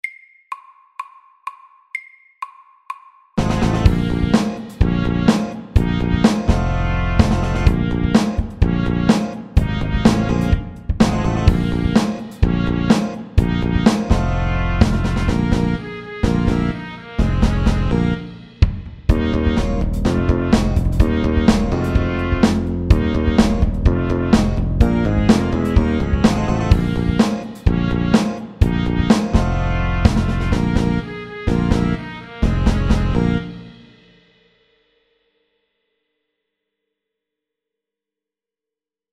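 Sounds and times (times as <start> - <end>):
funky music: 3.4 - 34.0.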